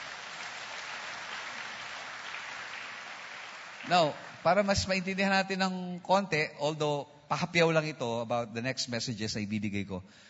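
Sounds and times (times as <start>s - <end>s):
church congregation applauding for the Lord: 0.0s - 5.3s
speech: 3.9s - 10.2s.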